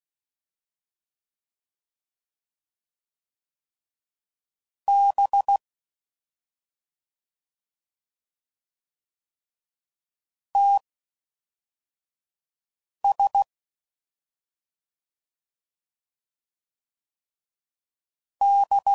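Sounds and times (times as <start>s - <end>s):
Morse code CW code groups at 5 WPM: 4.9s - 5.6s, 10.6s - 10.8s, 13.1s - 13.5s, 18.4s - 18.9s.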